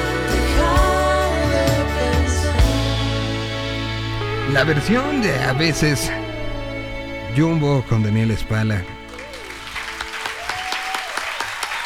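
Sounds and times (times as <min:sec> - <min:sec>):
faint tonal hum: 0:00.0 - 0:09.8
speech: 0:04.5 - 0:06.3, 0:07.4 - 0:09.0
applause: 0:09.1 - 0:11.8.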